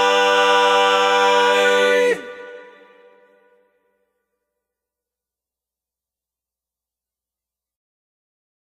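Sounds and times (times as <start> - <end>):
tenor singing: 0.0 - 3.6.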